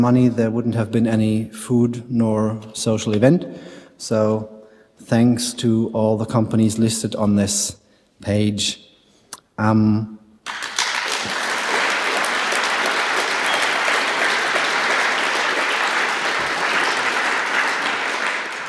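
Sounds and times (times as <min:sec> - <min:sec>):
speech: 0:00.0 - 0:08.9, 0:09.6 - 0:10.2
audience applauding: 0:10.4 - 0:18.6.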